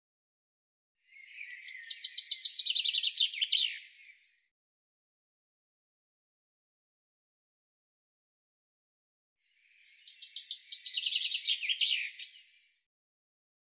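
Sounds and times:
bird song: 0:01.0 - 0:04.6, 0:09.4 - 0:12.9.

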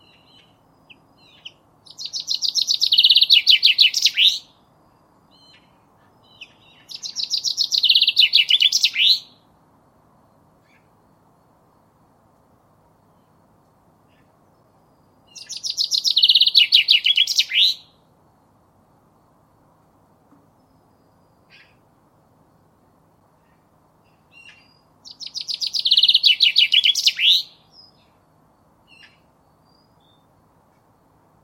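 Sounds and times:
common chaffinch singing: 0:00.0 - 0:04.6, 0:05.4 - 0:09.4, 0:15.2 - 0:18.0, 0:24.1 - 0:28.3.

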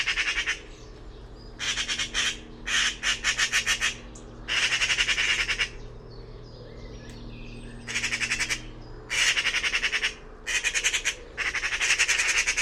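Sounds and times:
bird calling with grating buzzy squawks: 0:00.0 - 0:00.8, 0:01.6 - 0:05.9, 0:07.8 - 0:12.6.

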